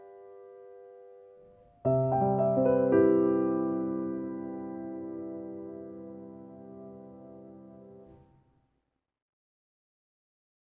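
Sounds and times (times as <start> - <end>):
piano: 0.0 - 8.6.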